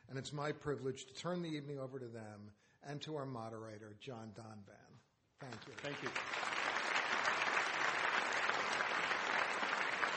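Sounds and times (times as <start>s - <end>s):
speech: 0.1s - 6.4s
audience applause: 5.5s - 10.1s.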